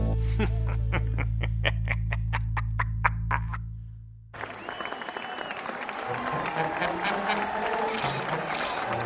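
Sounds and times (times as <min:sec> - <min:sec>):
laughter: 0:00.2 - 0:03.6, 0:06.0 - 0:09.0
crowd applauding and cheering: 0:04.4 - 0:09.0.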